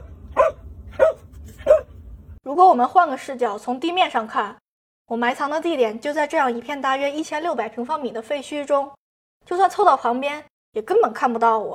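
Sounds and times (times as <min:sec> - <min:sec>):
search and rescue dog barking: 0:00.0 - 0:02.0
speech: 0:02.5 - 0:11.7.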